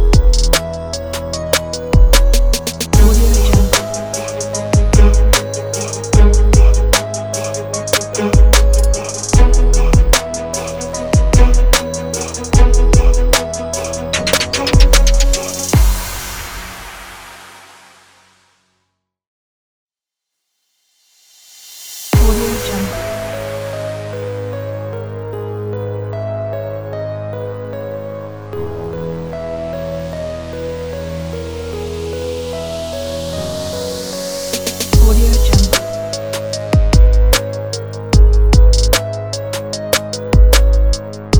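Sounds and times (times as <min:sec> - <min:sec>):
gangsta hip hop music: 0:00.0 - 0:17.8, 0:22.2 - 0:25.3, 0:31.2 - 0:41.3.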